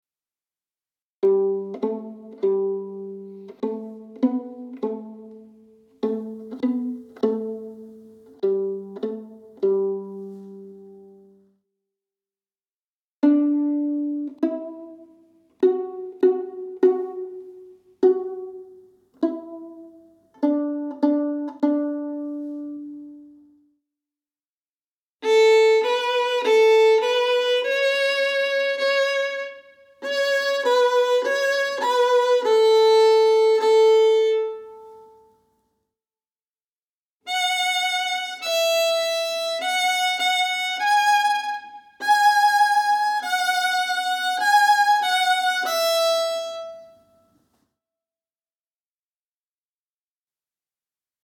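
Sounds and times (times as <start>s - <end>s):
violin improvisation: 1.2s - 11.3s, 13.2s - 23.5s, 25.2s - 35.4s, 37.3s - 47.3s.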